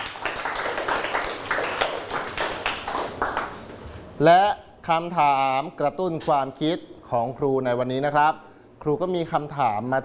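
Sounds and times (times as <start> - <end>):
students clapping for themselves: 0.0 - 3.9
speech: 4.2 - 10.0.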